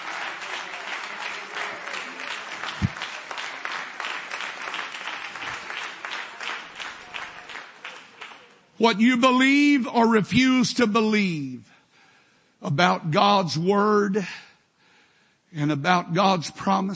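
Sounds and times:
crowd clapping: 0.0s - 8.9s
speech: 8.8s - 11.7s, 12.6s - 14.4s, 15.5s - 16.9s.

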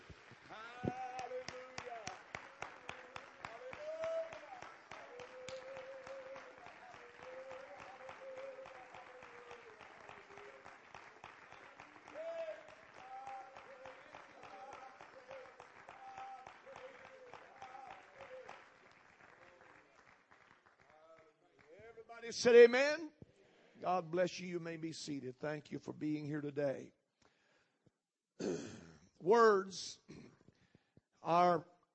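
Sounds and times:
audience clapping hands: 0.0s - 23.0s
speech: 22.2s - 23.1s, 23.9s - 27.0s, 29.2s - 30.1s, 31.3s - 31.7s.

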